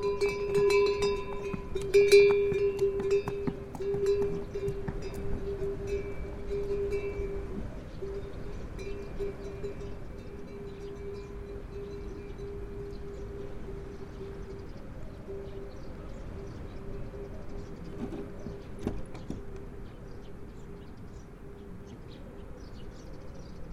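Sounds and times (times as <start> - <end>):
donkey train leaving Marpha in Nepal: 0.0 - 11.8.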